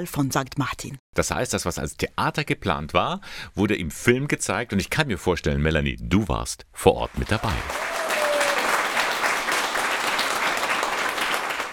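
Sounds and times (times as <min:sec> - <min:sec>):
speech: 0:00.0 - 0:08.0
audience applause: 0:07.1 - 0:11.7.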